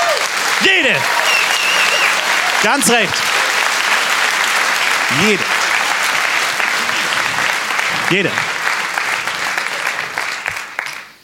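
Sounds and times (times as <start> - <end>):
audience applause: 0.0 - 11.2
speech: 0.6 - 1.3, 2.6 - 3.4, 5.1 - 5.6, 8.1 - 8.5
spoken word: 2.6 - 3.2, 8.0 - 8.4.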